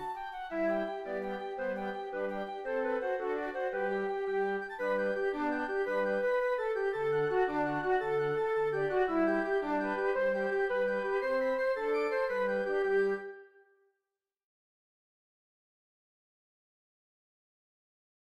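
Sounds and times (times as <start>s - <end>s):
flute ensemble: 0.0s - 13.7s.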